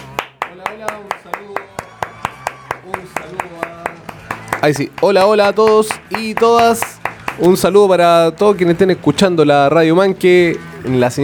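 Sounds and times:
applause: 0.0 - 7.6
speech: 0.6 - 1.9, 2.8 - 11.2.

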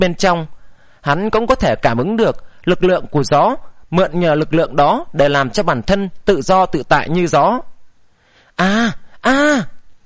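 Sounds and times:
speech: 0.0 - 7.7, 8.6 - 9.7
injured people groaning in an audiobook drama: 8.6 - 9.7.

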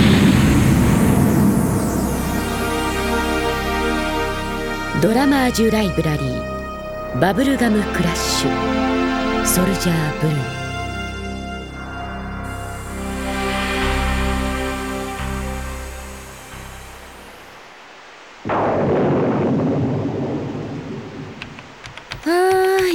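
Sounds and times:
rumbling thunder: 0.0 - 3.8, 18.4 - 22.2
musical passage: 0.0 - 17.7
heavy rain: 0.0 - 22.9
speech: 5.0 - 6.5, 7.1 - 8.8, 9.4 - 10.6.

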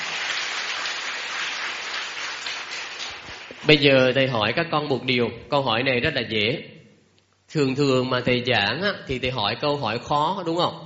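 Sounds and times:
loud applause: 0.0 - 3.7
speech: 3.7 - 6.8, 7.5 - 10.8.

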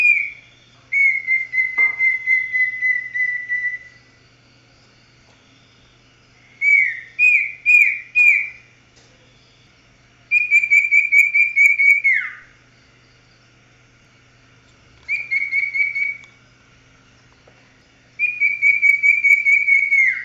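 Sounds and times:
Oriental magpie-robin whistling song: 0.0 - 4.2, 6.5 - 8.8, 10.3 - 12.6, 15.0 - 16.4, 18.2 - 20.2.

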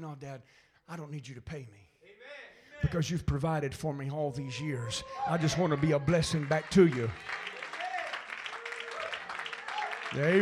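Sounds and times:
speech: 0.1 - 1.9, 2.8 - 7.5, 10.1 - 10.4
audience applause after preaching: 5.1 - 10.4.

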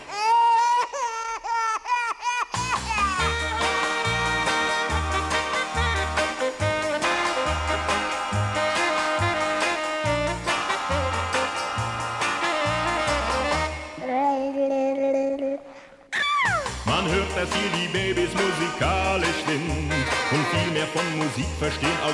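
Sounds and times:
baby crying in a cradle: 0.0 - 4.1, 13.7 - 16.8
band with thumping bass beat: 2.6 - 13.8, 16.6 - 22.1
speech: 20.9 - 22.1.

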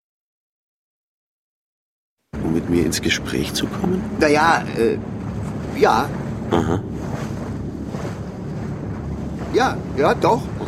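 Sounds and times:
boat travelling up a river, steady low rumble: 2.3 - 10.6
speech: 2.4 - 5.2, 5.8 - 7.0, 9.5 - 10.6
river water wash from a boat: 2.4 - 10.6.

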